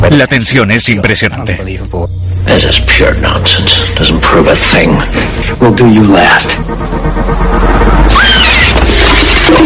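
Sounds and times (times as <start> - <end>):
speech: 0.1 - 7.2
film monster screaming: 8.0 - 9.5.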